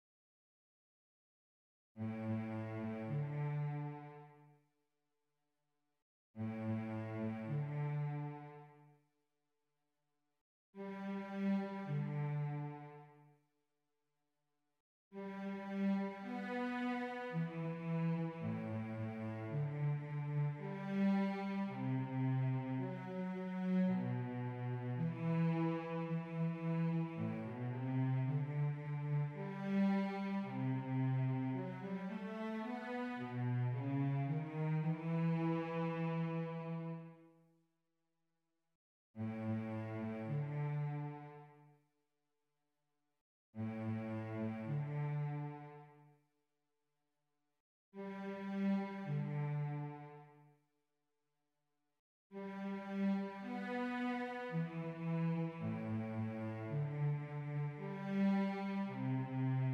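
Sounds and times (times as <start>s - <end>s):
cello: 2.0s - 4.6s, 6.4s - 9.0s, 10.8s - 13.4s, 15.2s - 37.4s, 39.2s - 41.8s, 43.6s - 46.2s, 48.0s - 50.6s, 52.3s - 59.7s.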